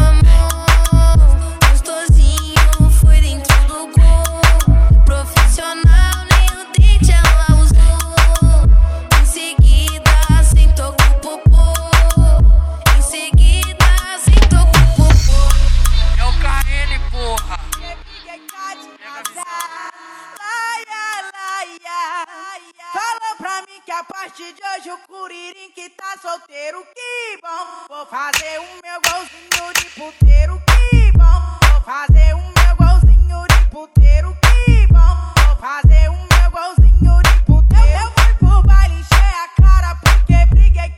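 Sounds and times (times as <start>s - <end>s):
low bass: 0.0s - 18.2s, 30.2s - 40.9s.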